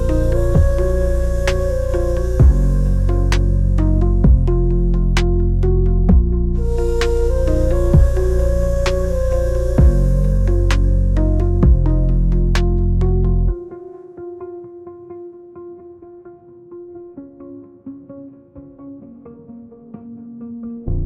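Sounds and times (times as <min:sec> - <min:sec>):
gritty didgeridoo: 0:00.0 - 0:13.6.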